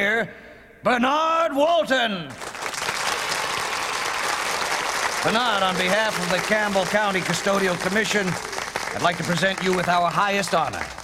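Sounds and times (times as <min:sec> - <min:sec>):
speech: 0:00.0 - 0:02.5, 0:05.2 - 0:11.0
audience applause greeting a custodian-of-the-year award winner: 0:02.3 - 0:11.0.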